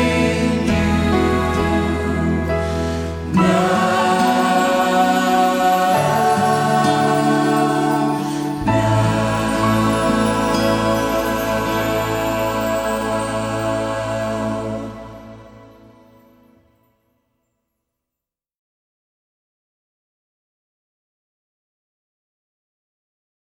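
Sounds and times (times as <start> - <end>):
musical accompaniment: 0.0 - 16.7.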